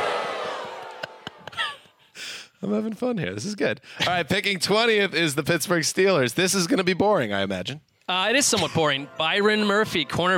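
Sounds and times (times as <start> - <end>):
fake audience crowd sound effect: 0.0 - 1.6
speech: 2.6 - 10.3.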